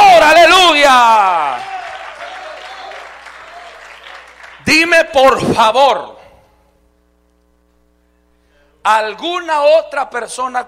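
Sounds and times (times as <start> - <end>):
audience applauding: 0.9 - 4.9
speech: 4.9 - 6.2, 8.8 - 10.6.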